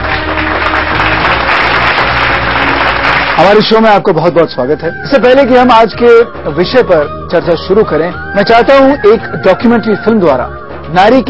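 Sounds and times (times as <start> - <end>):
audience applause welcoming guest: 0.0 - 3.7
speech: 3.4 - 11.2.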